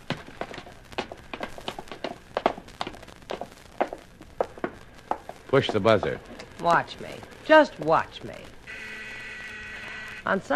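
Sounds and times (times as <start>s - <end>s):
several sets of footsteps thumping up stairs: 0.0s - 6.8s
speech: 5.5s - 8.9s, 10.2s - 10.5s.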